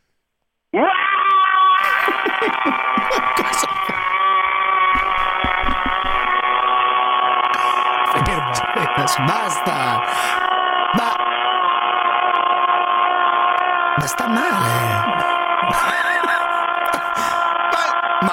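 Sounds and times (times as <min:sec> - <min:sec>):
speech: 0:00.7 - 0:01.0, 0:09.1 - 0:10.4
man's long scream: 0:00.7 - 0:18.3
laughter: 0:01.8 - 0:13.4, 0:14.1 - 0:18.3.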